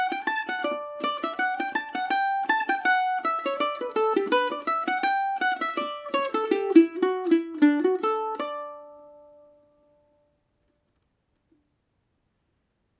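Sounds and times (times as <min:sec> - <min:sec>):
mandolin playing a hornpipe in D major: 0:00.0 - 0:10.3.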